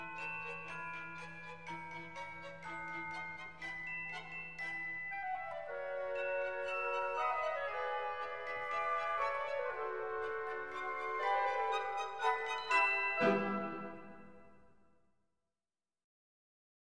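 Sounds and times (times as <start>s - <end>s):
cosy instrumental music for the New Year: 0.0s - 14.8s.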